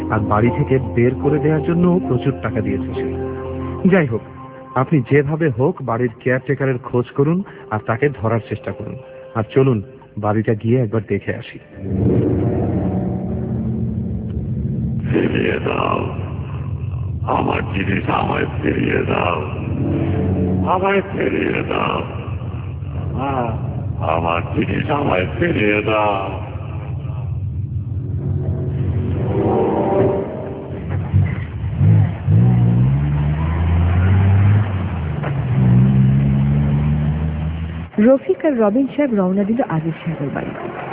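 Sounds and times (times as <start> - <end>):
speech: 0.1 - 3.2, 3.8 - 12.2, 15.1 - 16.2, 17.3 - 22.2, 23.2 - 26.4, 38.0 - 40.8
car driving, steady low engine rumble: 11.9 - 29.6, 30.4 - 37.9.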